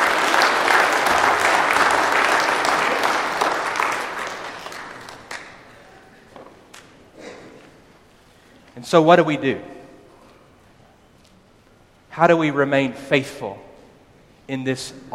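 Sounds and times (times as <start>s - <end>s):
audience applause: 0.0s - 5.8s
speech: 8.9s - 9.7s, 12.2s - 13.7s, 14.5s - 15.1s.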